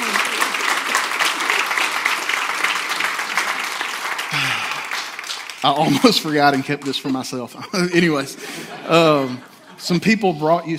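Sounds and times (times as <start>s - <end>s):
audience applauding: 0.0s - 7.5s
speech: 5.6s - 10.7s
laughter: 5.7s - 10.7s.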